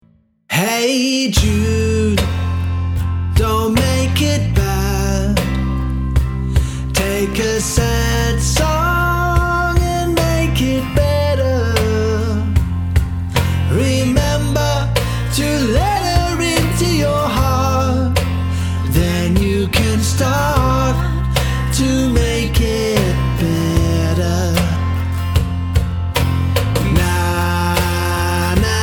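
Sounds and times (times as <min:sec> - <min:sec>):
acoustic trio playing: 0:01.4 - 0:28.8.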